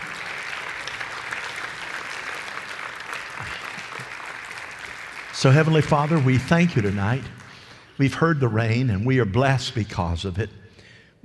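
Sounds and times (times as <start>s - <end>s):
audience applauding: 0.0s - 8.0s
speech: 5.4s - 7.4s, 8.0s - 10.6s.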